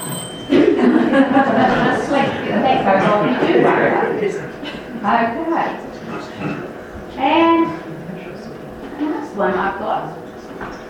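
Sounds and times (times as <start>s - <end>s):
alarm clock ringing with metallic jangle: 0.0s - 1.3s
speech: 0.5s - 6.6s, 9.0s - 10.7s
laughter: 0.5s - 6.7s.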